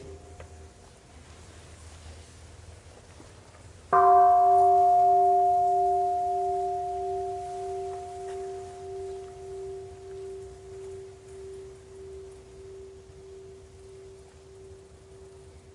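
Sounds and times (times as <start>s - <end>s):
meditation bell struck and ringing out: 3.9s - 15.7s.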